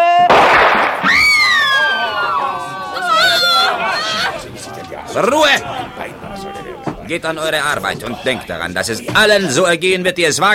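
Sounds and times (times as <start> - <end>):
gunshot from firing squad execution: 0.2 - 1.5
high wavering wail from a voice: 1.0 - 6.9
laughter: 1.4 - 9.8
murmur of people talking: 1.6 - 10.5
speech: 5.2 - 5.7, 7.1 - 10.5.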